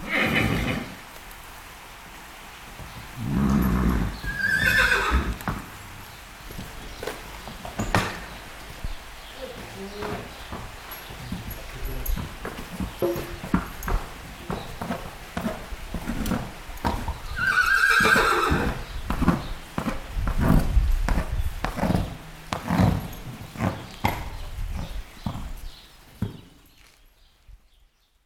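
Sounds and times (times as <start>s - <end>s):
horse whinnying: 0.0s - 1.0s, 3.2s - 5.6s, 17.3s - 18.9s
hooves shuffling: 0.0s - 28.1s
horse snorting: 3.2s - 8.4s, 12.3s - 25.6s.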